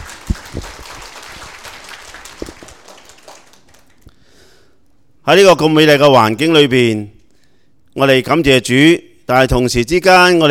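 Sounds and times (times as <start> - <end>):
audience applause: 0.0 - 4.1
speech: 5.3 - 7.2, 8.0 - 10.5.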